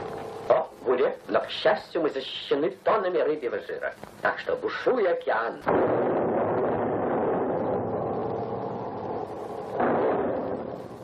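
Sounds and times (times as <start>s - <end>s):
speech: 1.0s - 6.1s
naval cannon fire: 5.6s - 11.0s.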